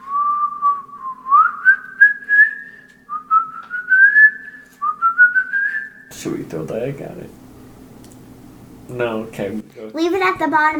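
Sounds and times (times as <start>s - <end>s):
person whistling in imitation of a bird: 0.0s - 6.1s
speech: 6.2s - 7.4s, 8.9s - 10.7s.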